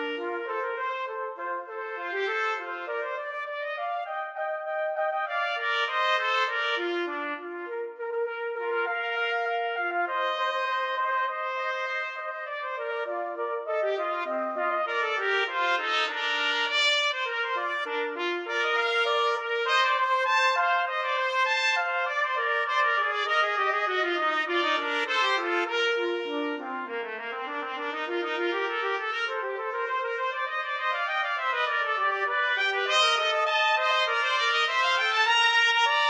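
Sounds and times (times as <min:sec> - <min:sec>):
trumpet duet: 0:00.0 - 0:36.0.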